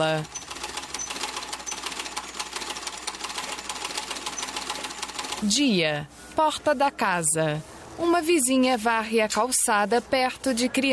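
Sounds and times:
speech: 0:00.0 - 0:00.4, 0:05.4 - 0:10.9
sewing machine stitching: 0:00.0 - 0:05.6.

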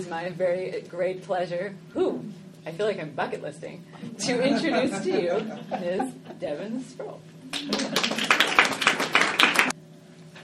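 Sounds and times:
speech: 0:00.0 - 0:08.2
laughter: 0:04.2 - 0:06.5, 0:07.6 - 0:08.4
audience clapping: 0:07.5 - 0:09.8.

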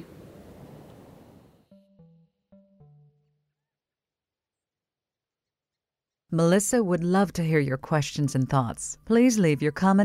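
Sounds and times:
Pacific Ocean surf: 0:00.0 - 0:01.5
speech: 0:06.3 - 0:10.0.

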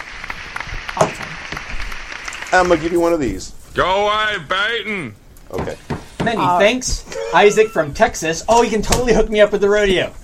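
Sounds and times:
applause sound effect: 0:00.0 - 0:03.2
speech: 0:02.5 - 0:10.2.

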